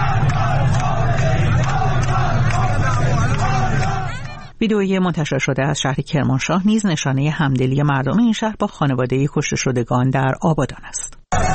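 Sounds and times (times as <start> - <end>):
crowd chanting slogans: 0.0 - 4.5, 11.3 - 11.5
speech: 4.6 - 11.5.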